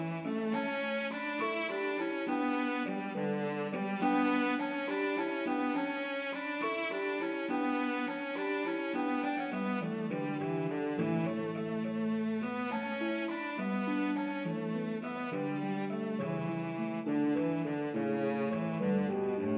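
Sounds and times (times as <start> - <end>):
cello in C: 0.0 - 19.5
harp: 0.0 - 19.5.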